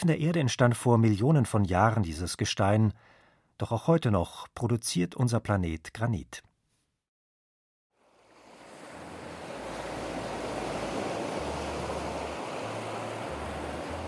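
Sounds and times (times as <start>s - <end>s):
speech: 0.0s - 6.5s
ocean waves washing onto a sandy beach lined with coconut palms: 8.0s - 14.0s.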